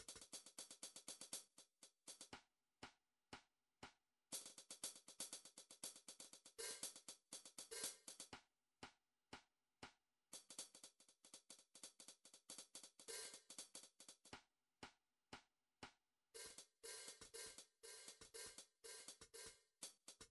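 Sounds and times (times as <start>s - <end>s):
drum track hi-hats: 0.0s - 2.3s, 4.3s - 8.4s, 10.4s - 14.3s, 16.4s - 20.2s.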